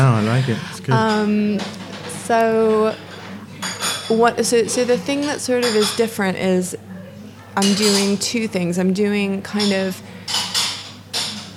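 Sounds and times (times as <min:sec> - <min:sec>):
speech: 0:00.0 - 0:03.1, 0:04.1 - 0:06.9, 0:07.6 - 0:10.1
dishes and cutlery clattering: 0:00.0 - 0:08.7, 0:09.4 - 0:11.5.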